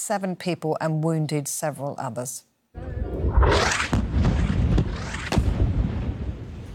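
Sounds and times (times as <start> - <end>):
speech: 0.1 - 3.8
airstrike explosion hitting a desalination plant in Gaza's Sheikh Radwan: 2.8 - 6.7
sharp cracking impacts: 3.3 - 6.7.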